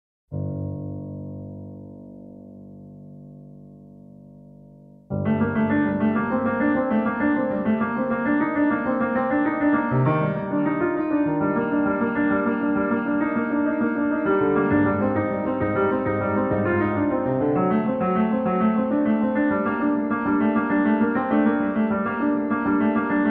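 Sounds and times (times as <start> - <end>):
piano: 0.3 - 23.2.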